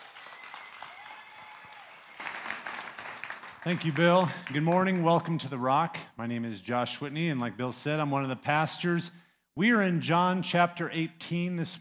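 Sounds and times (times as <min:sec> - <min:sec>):
faint whoops: 0:00.0 - 0:02.3
crowd applause: 0:00.0 - 0:05.4
speech: 0:03.6 - 0:11.7.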